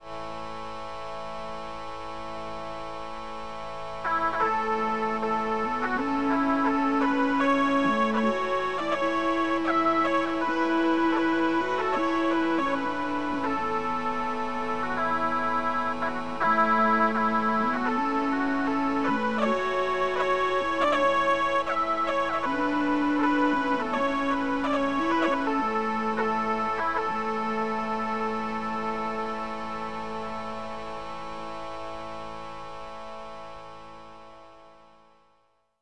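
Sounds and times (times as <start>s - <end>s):
bagpipes: 0.0s - 34.8s
fiddle playing: 4.0s - 31.3s.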